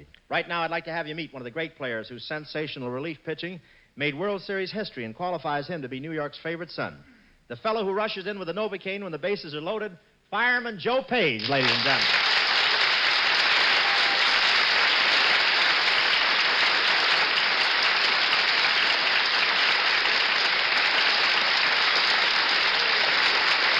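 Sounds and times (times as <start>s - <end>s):
speech: 0.3s - 12.3s
studio audience applauding: 11.4s - 23.7s.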